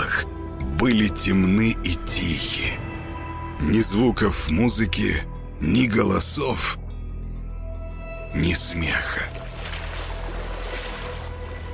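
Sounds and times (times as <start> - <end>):
speech: 0.8 - 2.9, 3.6 - 6.8, 8.4 - 9.4
water lapping against a pier: 9.3 - 11.7.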